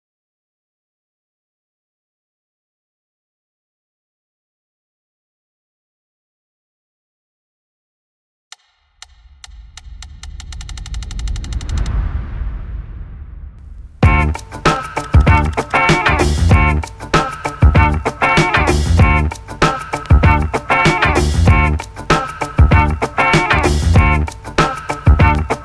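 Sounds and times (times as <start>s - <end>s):
downtempo nu-disco music: 14.0s - 25.6s.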